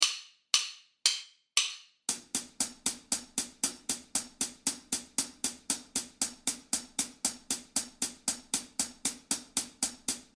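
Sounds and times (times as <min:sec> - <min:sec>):
hi-hat: 0:02.1 - 0:10.3.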